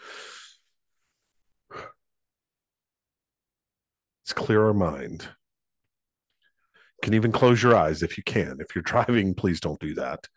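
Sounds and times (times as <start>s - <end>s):
deep cleansing breath during a guided mind-clearing exercise: 0.0s - 2.0s
speech: 4.3s - 5.4s, 7.0s - 10.3s.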